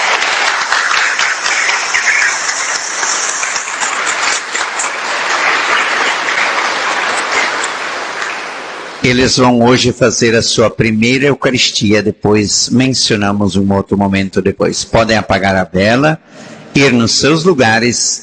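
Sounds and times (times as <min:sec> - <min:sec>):
audience applauding: 0:00.0 - 0:09.6
speech: 0:09.0 - 0:18.2.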